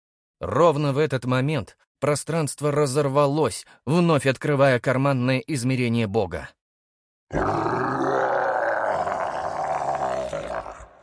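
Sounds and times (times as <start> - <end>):
speech: 0.4 - 6.6, 7.3 - 8.0
furious roar of a wounded creature: 7.3 - 11.0.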